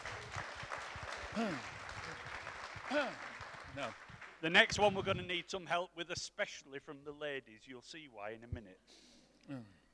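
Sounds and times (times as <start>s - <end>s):
audience clapping: 0.0s - 5.1s
speech: 1.4s - 1.7s, 2.9s - 9.8s.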